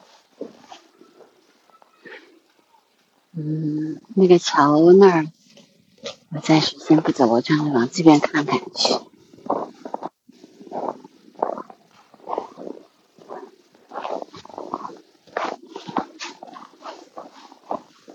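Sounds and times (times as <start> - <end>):
footsteps crunching on snow: 0.0 - 3.2, 7.0 - 18.1
speech: 3.4 - 5.4, 6.3 - 9.1.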